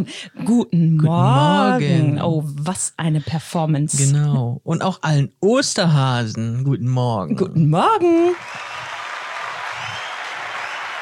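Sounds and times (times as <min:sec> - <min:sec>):
speech: 0:00.0 - 0:08.7
clapping: 0:08.4 - 0:11.0.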